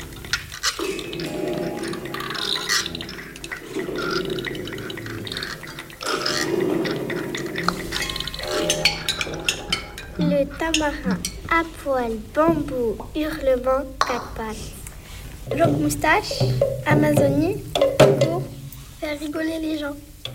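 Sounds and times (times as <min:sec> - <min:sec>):
jaguar growling: 0:00.0 - 0:11.5
speech: 0:10.4 - 0:14.8, 0:15.5 - 0:17.9, 0:19.2 - 0:20.1.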